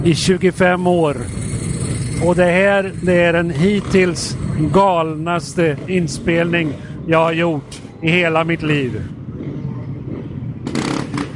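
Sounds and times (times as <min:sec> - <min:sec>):
speech: 0:00.0 - 0:01.4, 0:02.2 - 0:09.2
enduro motorcycles passing with riders doing wheelies: 0:00.0 - 0:11.3.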